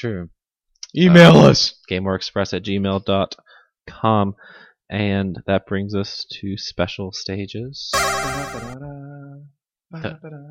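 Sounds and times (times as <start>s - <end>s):
speech: 0.0s - 10.4s
bright electronic video game ring-collect chime: 8.0s - 8.8s.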